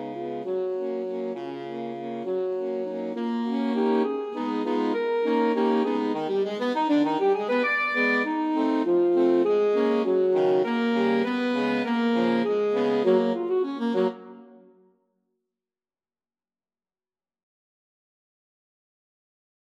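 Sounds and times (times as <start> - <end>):
alto sax quartet playing a waltz: 0.0 - 14.5.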